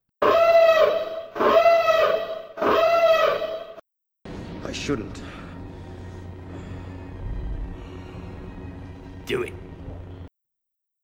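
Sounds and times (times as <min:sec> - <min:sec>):
spoiler warning siren sound effect: 0:00.2 - 0:03.8
speech: 0:04.8 - 0:05.4, 0:09.3 - 0:09.6.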